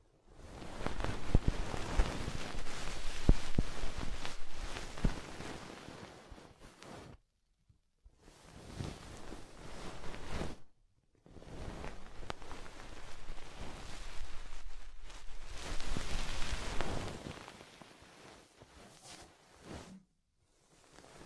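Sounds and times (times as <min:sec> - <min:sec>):
soft fluffy ASMR triggers rustling and brushing: 0:00.3 - 0:07.2, 0:08.2 - 0:21.2.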